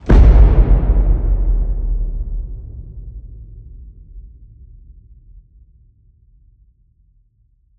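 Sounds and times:
low cinematic hits: 0.0 - 4.6.

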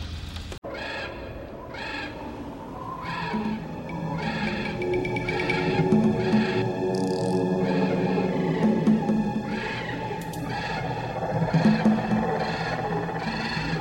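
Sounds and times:
Halloween scary haunted forest music: 0.7 - 13.7.

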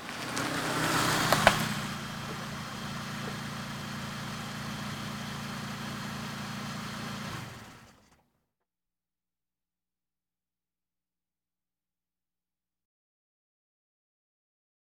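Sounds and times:
various automobiles: 0.0 - 8.2.

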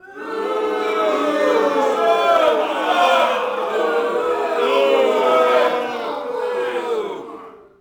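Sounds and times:
boxing crowd small boo: 0.0 - 7.6.

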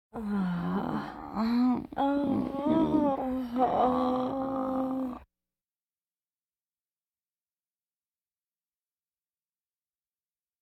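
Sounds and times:
breathing vocal effects: 0.2 - 5.2
baby moaning: 2.0 - 5.2.

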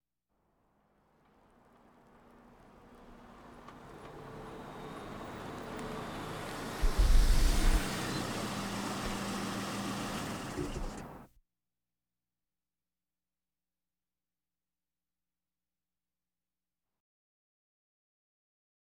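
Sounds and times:
various automobiles: 0.8 - 11.3.

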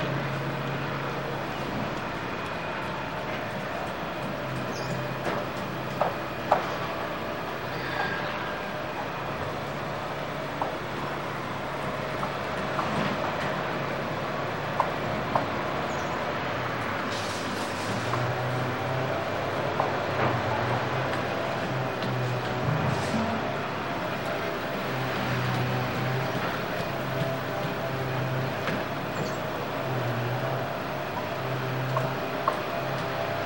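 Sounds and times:
heavy construction ambience: 0.0 - 33.4.

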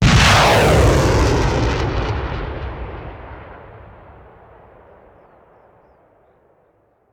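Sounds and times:
artillery missile launcher firing: 0.0 - 4.6.

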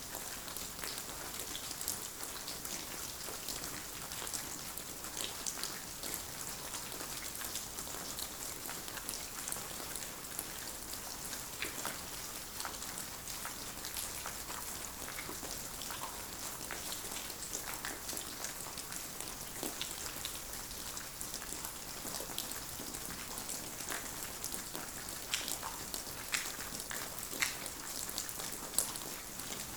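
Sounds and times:
rain at a cave entrance: 0.0 - 29.7.

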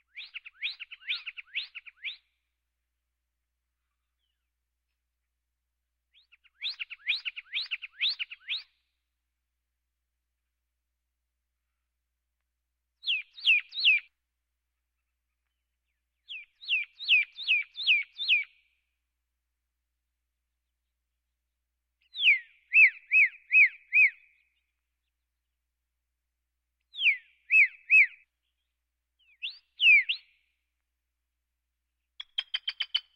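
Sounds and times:
birds: 0.0 - 2.5, 3.6 - 5.4, 6.1 - 9.0, 13.0 - 19.0, 22.0 - 25.7, 26.8 - 30.8, 32.0 - 33.1.

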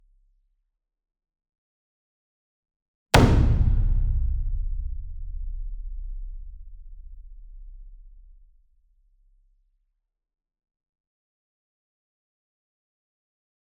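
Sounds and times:
60 inch taiko drum hit hard with medium beater: 3.2 - 6.9.

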